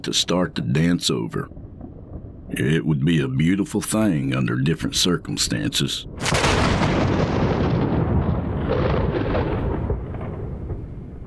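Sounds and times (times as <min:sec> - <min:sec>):
speech: 0:00.0 - 0:01.6, 0:02.6 - 0:07.4
loud thunderclap: 0:06.1 - 0:11.2.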